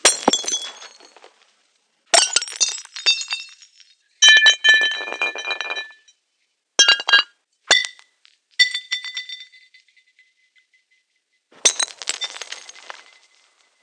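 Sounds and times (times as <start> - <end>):
processed glass breaking: 0.0 - 1.2, 2.2 - 6.1, 6.8 - 8.0, 11.6 - 13.5.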